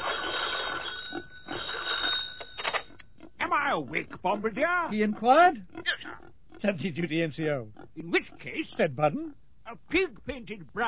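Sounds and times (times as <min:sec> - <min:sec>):
telephone bell ringing: 0:00.0 - 0:03.0
speech: 0:03.8 - 0:05.8, 0:06.6 - 0:10.8.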